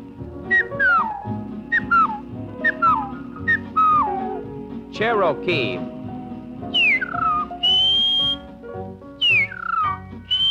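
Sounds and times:
whistled imitation of a tea kettle: 0.5s - 4.4s, 6.7s - 8.5s, 9.2s - 10.5s
speech: 5.0s - 6.0s.

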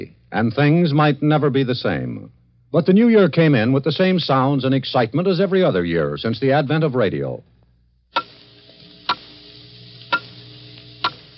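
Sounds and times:
speech: 0.0s - 7.5s
low steady hum: 0.0s - 11.3s
clock ticking in a New Year's Eve countdown: 8.2s - 8.4s.

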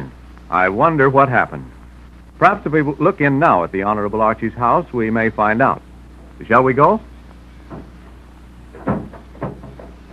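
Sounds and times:
low steady hum: 0.0s - 10.1s
speech: 0.5s - 1.8s, 2.4s - 7.1s, 7.7s - 7.9s
wooden door slamming: 7.7s - 8.1s, 8.7s - 10.1s.

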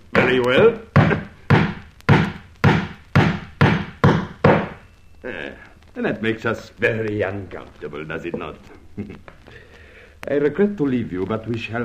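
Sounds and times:
speech: 0.3s - 0.9s, 6.0s - 9.7s, 10.3s - 11.8s
amateur carpenter hammering nails: 0.6s - 4.8s.

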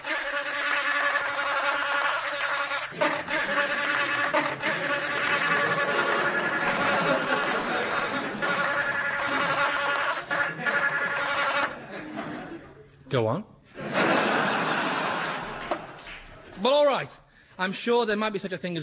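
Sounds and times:
bluebottle fly buzzing: 0.0s - 11.8s
laughter: 2.8s - 12.9s, 13.7s - 16.6s
speech: 13.1s - 13.5s, 17.6s - 18.8s.

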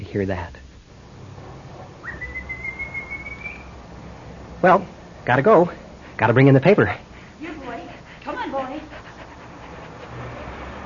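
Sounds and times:
speech: 0.1s - 0.6s, 4.6s - 7.1s
dog panting: 7.0s - 10.8s.

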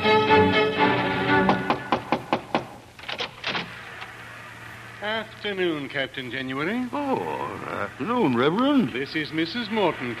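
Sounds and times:
music: 0.0s - 2.4s
knocking on a lighthouse door: 1.4s - 2.8s
speech: 5.2s - 10.1s.

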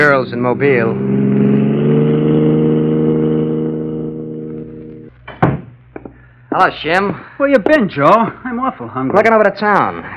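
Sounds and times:
speech: 0.0s - 1.6s, 6.6s - 10.1s
car engine revving and driving away: 0.0s - 5.1s.

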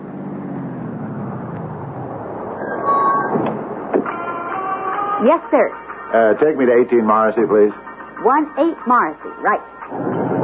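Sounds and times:
taxi engine rumble as it pulls up: 0.0s - 5.2s, 9.8s - 10.4s
brief high tones: 2.6s - 3.4s
speech: 5.2s - 10.1s.

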